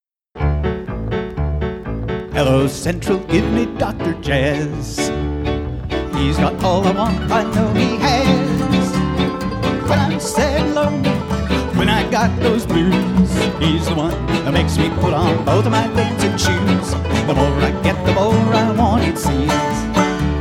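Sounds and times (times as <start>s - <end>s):
jazz music: 0.4s - 20.3s.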